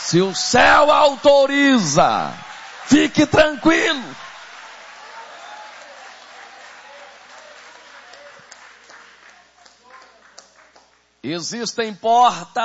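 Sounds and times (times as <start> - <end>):
audience applauding: 0.0 - 11.1
speech: 0.1 - 4.2, 11.2 - 12.6.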